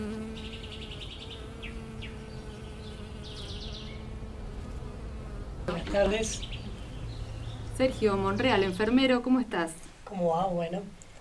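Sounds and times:
bees buzzing: 0.0 - 9.5
speech: 6.0 - 6.6, 7.8 - 11.0.

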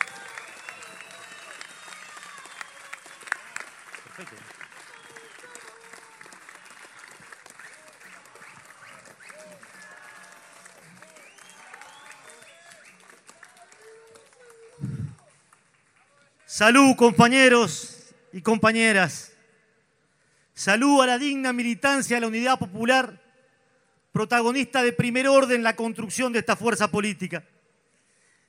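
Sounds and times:
people cheering at a Unidad Popular political rally in Uruguay: 0.0 - 16.5
crowd clapping at a Unidad Popular political rally in Uruguay: 0.0 - 16.6
speech: 4.2 - 4.6, 16.6 - 19.3, 20.6 - 23.2, 24.2 - 27.5.

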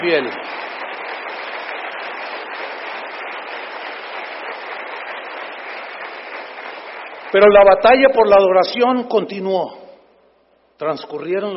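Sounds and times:
speech: 0.0 - 0.7, 7.3 - 9.8, 10.8 - 11.5
audience applauding: 0.0 - 8.6.

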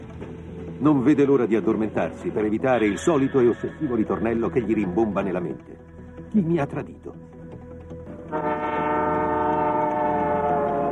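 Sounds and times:
moving sleeper train travelling from Moscow to Leningrad: 0.0 - 6.2, 8.1 - 10.8
speech: 0.8 - 7.3, 8.3 - 8.6
train horn blast: 8.3 - 10.8.

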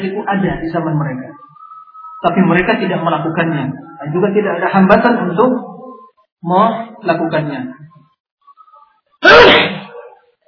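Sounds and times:
speech: 0.2 - 1.4, 2.2 - 5.7, 6.4 - 8.0
loud explosive sneeze: 9.2 - 10.2.

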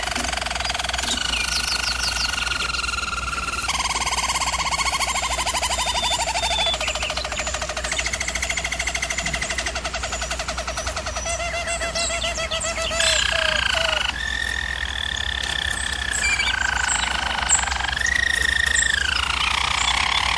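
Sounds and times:
German Roller canary singing rolling trills: 0.0 - 20.3
low hum: 0.0 - 20.3.

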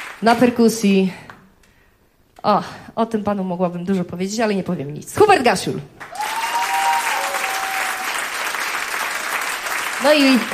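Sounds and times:
speech: 0.2 - 1.2, 2.4 - 6.1, 10.0 - 10.5
audience applause for the backing singers at a concert: 6.0 - 10.5.

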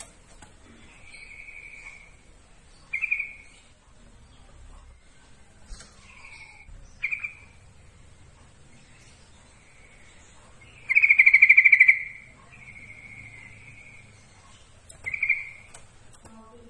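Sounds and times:
yellow-vented bulbul giving bright notes: 0.6 - 3.8, 6.0 - 16.0.

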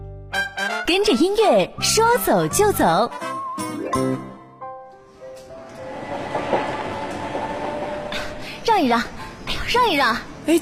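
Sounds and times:
speech: 0.9 - 3.3, 3.9 - 4.3, 8.8 - 10.6
short tonal notes: 5.4 - 8.7
train rolling on rails: 5.4 - 10.6.

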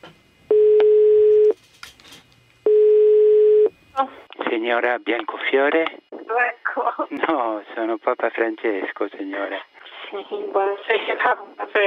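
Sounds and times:
telephone line tones before a call: 0.5 - 1.6, 2.7 - 3.7
speech: 4.7 - 11.8.

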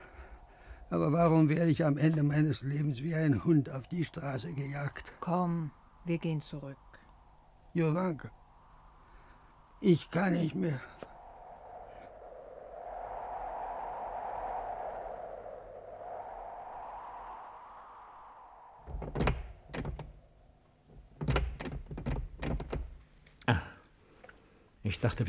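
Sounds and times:
speech: 0.9 - 6.8, 7.7 - 8.4, 9.8 - 11.0, 25.0 - 25.2
steady low hum: 3.7 - 20.6
locked wooden temple door knocked, pushed and rattled: 21.2 - 23.0.

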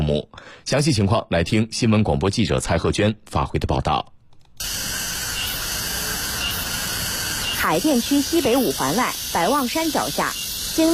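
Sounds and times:
speech: 0.1 - 4.9, 7.6 - 10.9
cicadas buzzing in a park: 4.6 - 10.9.

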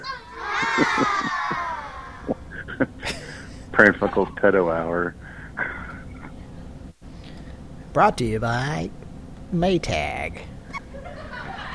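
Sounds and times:
shouted bursts: 0.0 - 2.4
canned audience laughter like children shrieking: 0.4 - 4.4, 10.8 - 11.7
speech: 0.7 - 1.5, 3.8 - 5.2, 8.0 - 10.5.

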